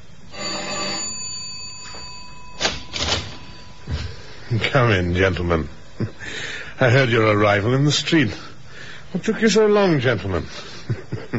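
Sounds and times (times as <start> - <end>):
doorbell ringing: 0.3 - 5.0
speech: 4.5 - 8.5, 9.1 - 11.3
laughter: 5.9 - 6.4, 10.6 - 11.3.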